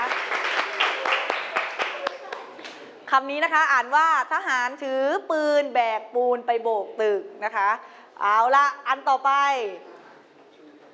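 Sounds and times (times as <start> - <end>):
class applauding: 0.0 - 2.8
speech: 3.1 - 9.9.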